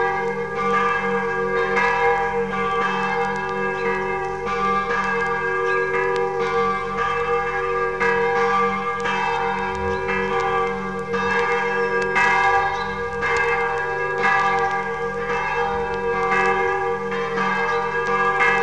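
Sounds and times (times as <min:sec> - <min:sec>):
old church bells ringing: 0:00.0 - 0:18.6.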